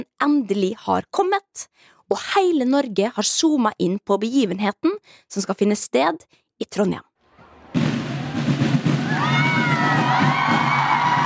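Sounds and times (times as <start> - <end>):
speech: 0.0 - 7.1
large crowd cheering and shouting: 7.4 - 11.2.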